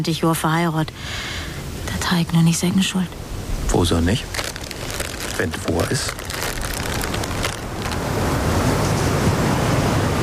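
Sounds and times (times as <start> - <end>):
speech: 0.0 - 4.4, 5.4 - 6.2
waves: 1.0 - 10.2
storm wind: 3.1 - 10.2.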